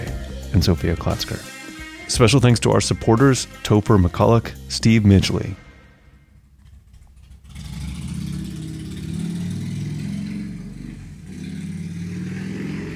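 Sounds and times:
speech: 0.5 - 5.6
motorcycle engine revving loudly: 6.4 - 12.9.

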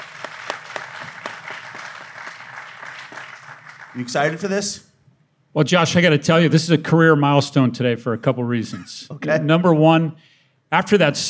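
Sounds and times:
audience applause: 0.0 - 4.6
speech: 4.0 - 4.9, 5.5 - 11.2.

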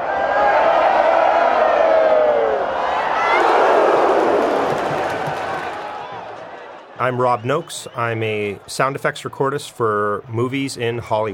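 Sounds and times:
large crowd cheering: 0.0 - 10.9
whoops and shouts: 0.2 - 4.5
speech: 7.0 - 11.3.

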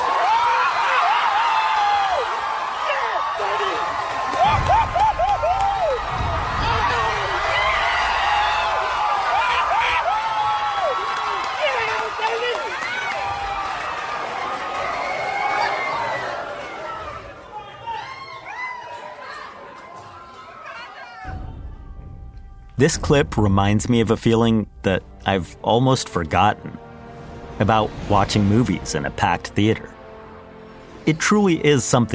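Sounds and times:
packed movie theater audience cheering at Marvel heroes arriving: 0.0 - 21.3
speech: 22.8 - 26.7, 27.6 - 30.0, 31.1 - 32.1.

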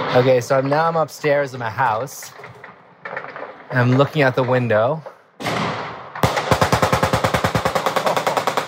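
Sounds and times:
speech: 0.2 - 2.4, 3.8 - 5.1
AK rifle gunfire: 5.4 - 8.6.

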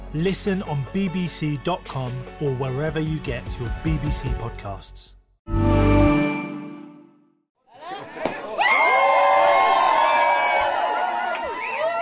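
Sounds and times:
speech: 0.1 - 5.6
crowd of hostage families and people in Gaza cheering a ceasefire announcement: 7.8 - 12.0.

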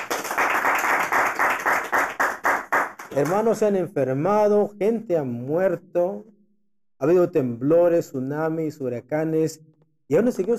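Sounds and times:
crowd clapping in a quick steady rhythm: 0.0 - 3.7
speech: 3.2 - 6.3, 7.0 - 10.5.

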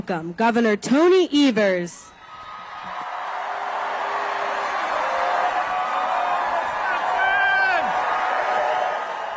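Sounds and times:
speech: 0.1 - 2.2
crowd cheering at a Harris campaign rally in a high school gymnasium: 2.2 - 9.3.

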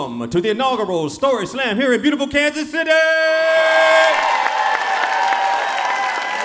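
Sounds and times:
speech: 0.0 - 4.2
crowd cheering at live event: 3.5 - 6.4.

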